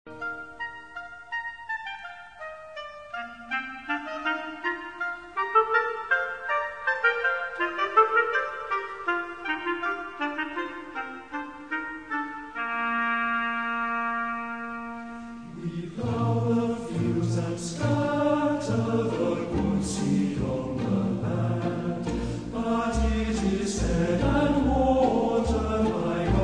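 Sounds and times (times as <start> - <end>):
orchestra playing hymns: 0.1 - 26.4
choir singing hymns: 15.4 - 26.4.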